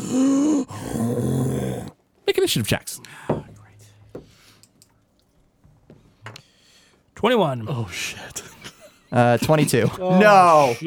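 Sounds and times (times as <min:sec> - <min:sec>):
person voicing a monster growl: 0:00.0 - 0:02.0
speech: 0:02.4 - 0:03.3, 0:07.2 - 0:08.4, 0:09.1 - 0:10.8.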